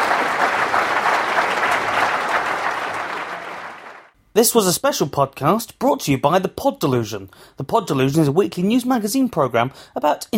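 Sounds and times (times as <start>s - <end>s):
audience applause: 0.0s - 4.1s
speech: 4.4s - 10.3s.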